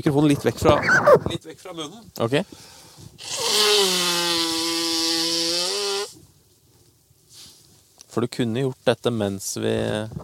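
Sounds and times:
speech: 0:00.0 - 0:04.1, 0:08.2 - 0:10.2
person blowing nose: 0:03.2 - 0:06.2.

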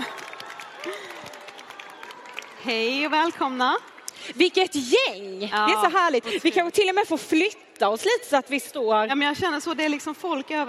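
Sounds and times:
audience cheering: 0:00.0 - 0:03.4
speech: 0:02.6 - 0:10.6.

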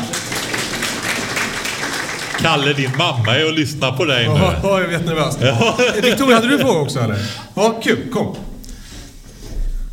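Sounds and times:
audience applause: 0:00.0 - 0:06.3
speech: 0:02.4 - 0:08.5
laughter: 0:02.5 - 0:07.3.

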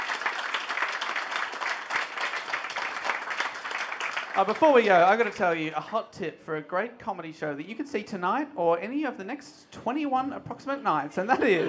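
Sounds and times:
audience applause: 0:00.0 - 0:05.4
speech: 0:04.4 - 0:11.6
laughter: 0:11.2 - 0:11.6.

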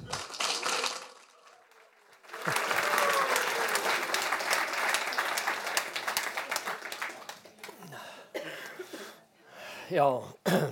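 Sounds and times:
warm applause for a lecturer: 0:00.0 - 0:07.9
speech: 0:09.9 - 0:10.6.

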